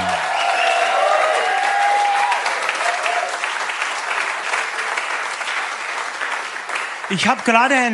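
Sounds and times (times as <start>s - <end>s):
faint whistles and cheers: 0.0s - 3.5s
audience applause: 0.0s - 7.9s
speech: 7.1s - 7.9s.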